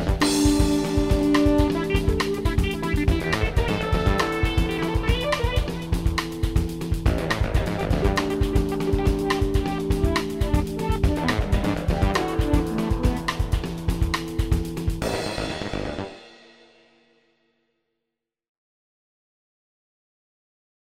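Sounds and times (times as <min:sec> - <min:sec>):
bass groove: 0:00.0 - 0:16.2.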